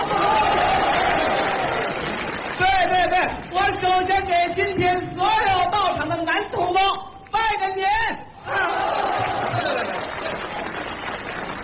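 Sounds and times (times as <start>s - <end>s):
audience applause: 0.0s - 3.2s, 8.6s - 11.6s
speech: 3.2s - 8.9s.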